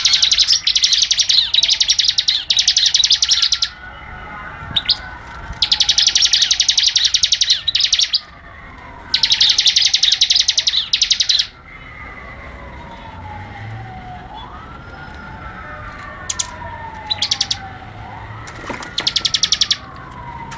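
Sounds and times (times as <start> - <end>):
bar-winged prinia singing rapid machine-gun trills: 0.0 - 3.8, 4.8 - 8.3, 9.1 - 11.6, 16.3 - 17.7, 18.6 - 19.9.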